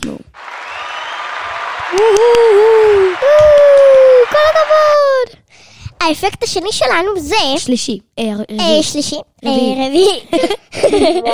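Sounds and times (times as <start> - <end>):
dense crowd applause sound effect: 0.4 - 5.1
speech: 1.9 - 2.8, 6.1 - 11.3
laughter: 10.3 - 11.3.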